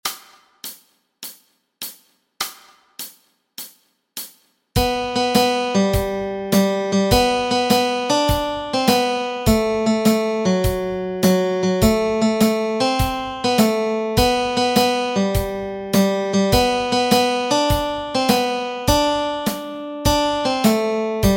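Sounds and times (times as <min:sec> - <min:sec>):
melody: 0:04.8 - 0:21.3.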